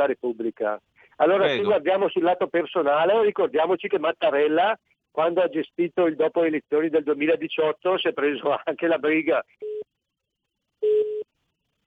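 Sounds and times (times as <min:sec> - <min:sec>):
speech: 0:00.0 - 0:09.8
telephone busy tone after a dropped call: 0:10.8 - 0:11.3.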